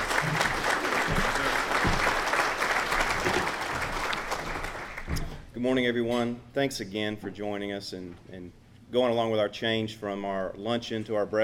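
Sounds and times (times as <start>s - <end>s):
audience applause: 0.0s - 5.2s
speech: 5.6s - 11.4s.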